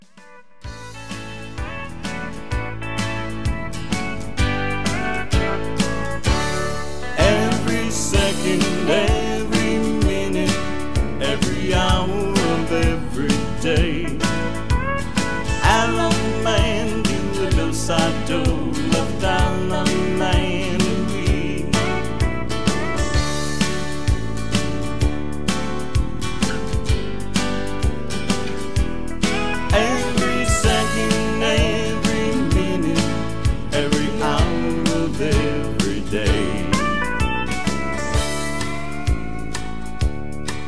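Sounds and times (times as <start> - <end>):
instrumental music: 0.0 - 40.6
backing vocals: 7.1 - 10.6, 15.5 - 21.6, 29.7 - 37.0.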